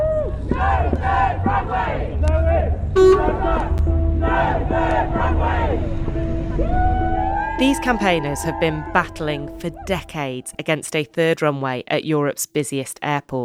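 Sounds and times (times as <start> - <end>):
crowd cheering and whooping jubilantly outside court: 0.0 - 9.1
low rumble of traffic: 0.0 - 10.9
speech: 7.6 - 13.4.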